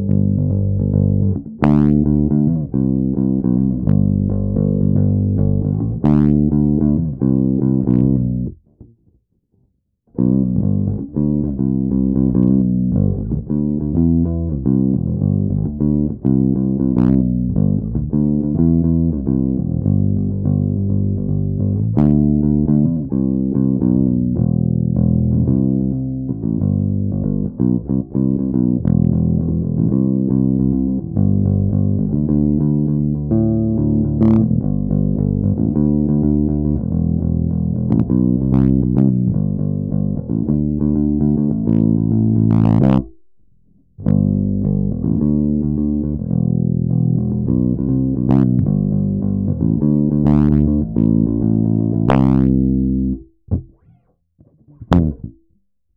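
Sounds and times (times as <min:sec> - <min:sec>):
bass: 0:00.0 - 0:55.9.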